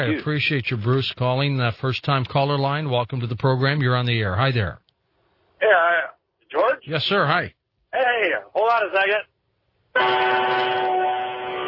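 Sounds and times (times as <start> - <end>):
speech: 0.0 - 4.8, 6.8 - 9.3, 10.0 - 11.0
truck horn honking: 9.9 - 11.6.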